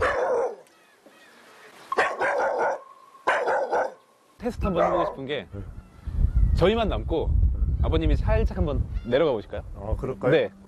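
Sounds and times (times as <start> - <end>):
dog barking: 0.0 - 0.6, 1.9 - 4.0, 4.7 - 5.2
speech: 4.4 - 5.8, 6.6 - 10.6.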